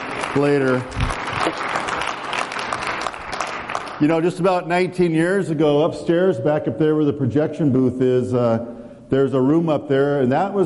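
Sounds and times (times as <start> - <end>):
audience applause: 0.0 - 4.3
speech: 0.4 - 1.7, 4.0 - 10.6.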